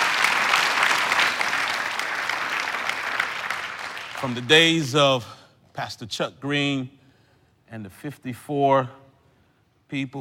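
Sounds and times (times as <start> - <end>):
audience clapping hands: 0.0 - 5.0
speech: 4.2 - 7.0, 7.7 - 9.0, 9.9 - 10.1.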